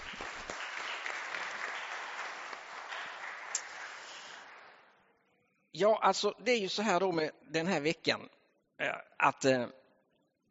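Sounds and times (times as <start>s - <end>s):
audience clapping: 0.0s - 5.0s
speech: 5.8s - 9.8s.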